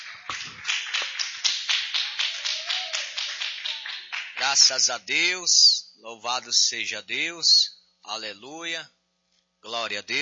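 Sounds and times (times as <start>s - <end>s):
group clapping hands: 0.0s - 4.8s
speech: 4.5s - 9.0s, 9.6s - 10.1s.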